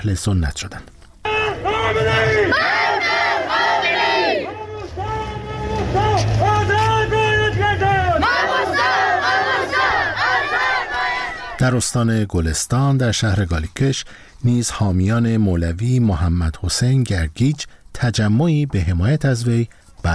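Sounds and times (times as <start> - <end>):
speech: 0.0 - 0.9, 11.6 - 20.1
protest crowd chanting: 1.2 - 11.8.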